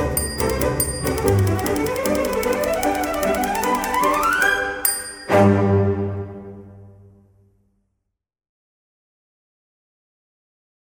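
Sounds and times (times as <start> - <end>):
typewriter typing: 0.0 - 5.2.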